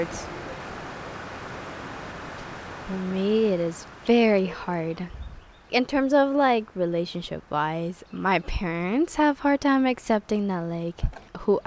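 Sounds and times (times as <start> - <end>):
speech: 0.0 - 0.4, 2.9 - 11.6
rain falling: 0.0 - 5.0.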